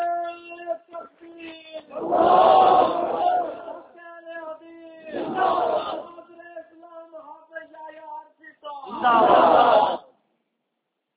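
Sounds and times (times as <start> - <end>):
single leading voice: 0.0 - 10.0
crowd chanting a religious slogan in response: 1.9 - 3.9, 5.1 - 6.1, 8.9 - 10.1.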